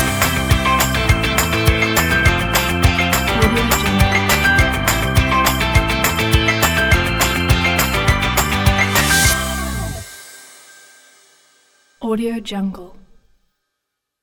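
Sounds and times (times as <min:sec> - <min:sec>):
party fun indie rock music: 0:00.0 - 0:10.4.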